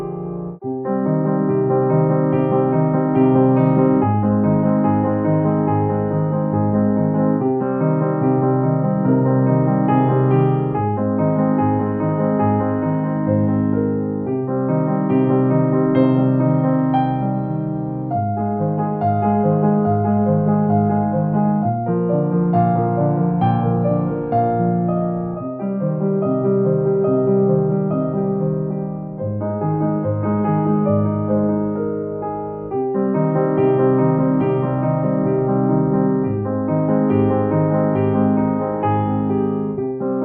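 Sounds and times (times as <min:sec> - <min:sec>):
piano arpeggios: 0:00.0 - 0:40.2.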